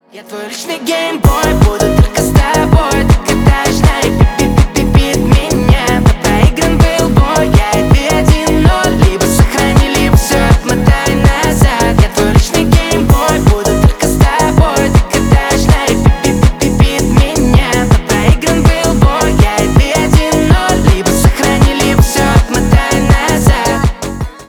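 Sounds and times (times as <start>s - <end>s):
remix music: 0.0s - 24.4s.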